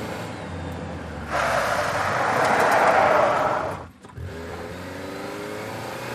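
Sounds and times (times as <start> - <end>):
small compact car 180 skid: 1.2 - 4.3.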